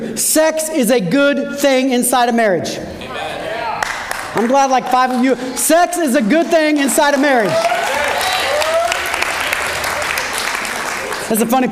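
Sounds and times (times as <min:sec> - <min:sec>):
speech: 0:00.2 - 0:03.2, 0:04.4 - 0:08.0, 0:11.3 - 0:11.7
audience clapping: 0:03.8 - 0:11.7
person whooping: 0:07.5 - 0:09.1.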